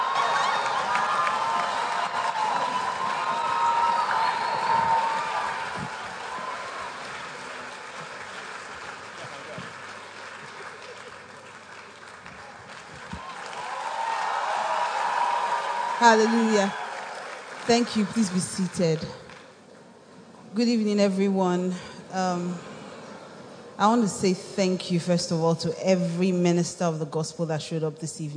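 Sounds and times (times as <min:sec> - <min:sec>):
church congregation cheering and applause during a midweek service: 0:00.0 - 0:19.6
speech: 0:16.0 - 0:16.8, 0:17.7 - 0:19.2, 0:20.6 - 0:22.7, 0:23.8 - 0:28.3.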